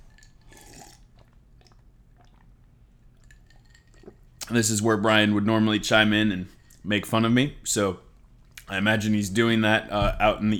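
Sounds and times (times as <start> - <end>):
person gulping water: 0.0 - 4.5
speech: 4.5 - 8.0, 8.7 - 10.5.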